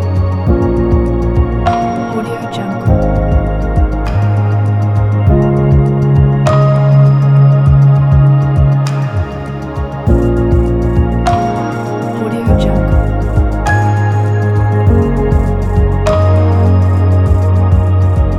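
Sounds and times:
electronic ambient soundscape: 0.0s - 18.3s.

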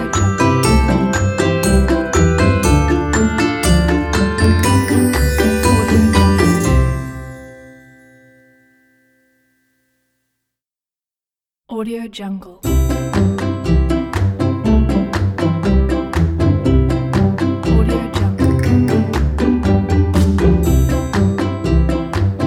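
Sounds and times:
happy fun comedy music: 0.0s - 8.2s, 12.6s - 22.4s.

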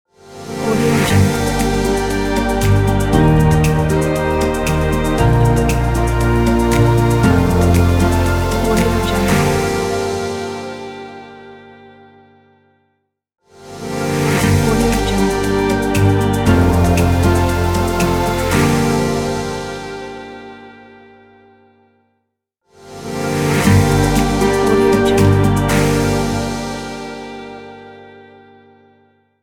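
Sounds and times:
sad acoustic folk logo: 0.3s - 11.2s, 13.7s - 20.6s, 22.9s - 27.9s.

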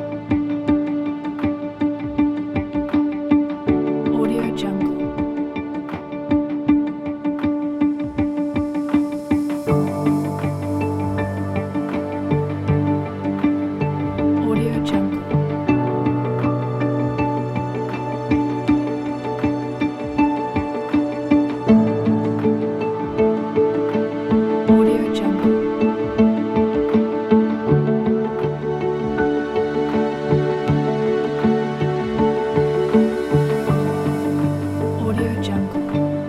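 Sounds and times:
abstract documentary music: 0.0s - 36.2s.

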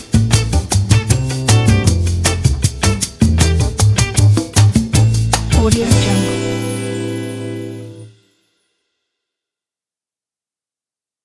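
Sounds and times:
bossa nova lounge jazz: 0.0s - 8.1s.

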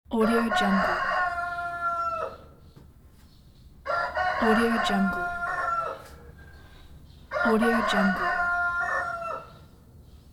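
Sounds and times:
rooster: 0.2s - 2.6s, 3.8s - 6.7s, 7.3s - 9.7s.

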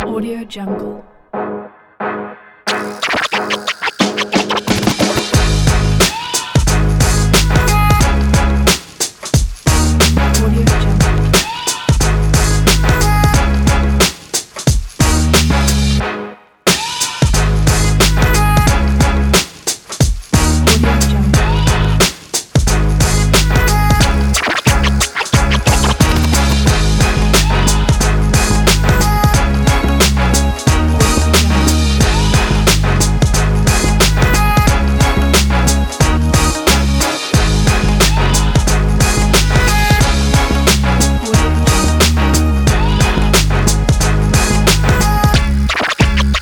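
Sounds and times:
urban hip hop beat: 2.7s - 16.0s, 16.7s - 46.4s.

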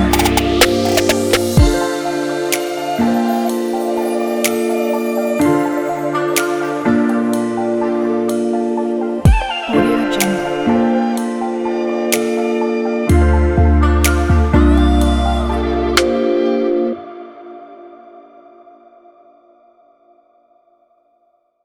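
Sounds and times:
chill trap music: 0.0s - 16.3s.

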